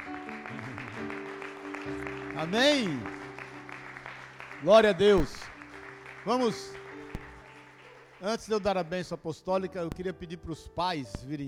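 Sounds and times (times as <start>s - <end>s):
audience applauding: 0.0s - 9.1s
speech: 1.8s - 3.2s, 4.6s - 5.4s, 6.2s - 6.8s, 8.2s - 11.4s.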